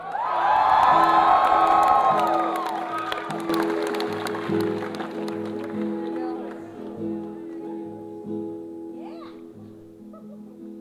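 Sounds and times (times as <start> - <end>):
scattered clapping: 0.0 - 7.9
crowd cheering: 0.0 - 8.0.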